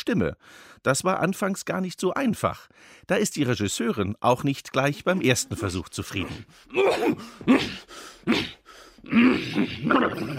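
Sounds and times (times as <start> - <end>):
speech: 0.0 - 10.3
man imitating a dragon growling and sneezing: 5.1 - 10.3.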